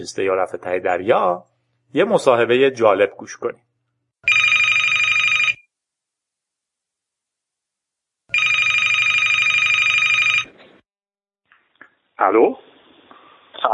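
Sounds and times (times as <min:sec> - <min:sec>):
speech: 0:00.0 - 0:03.6, 0:12.2 - 0:12.6
telephone ringing for an outgoing call: 0:04.2 - 0:05.7, 0:08.3 - 0:10.6.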